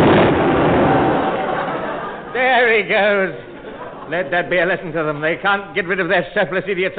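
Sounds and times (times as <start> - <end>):
cannon firing: 0.0 - 2.3
laughter: 0.9 - 5.2
speech: 2.8 - 3.5, 4.1 - 6.9.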